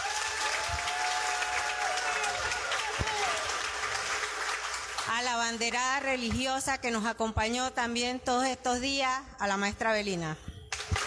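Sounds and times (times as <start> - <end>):
audience applause: 0.0 - 5.2, 10.7 - 11.0
speech: 5.2 - 10.5.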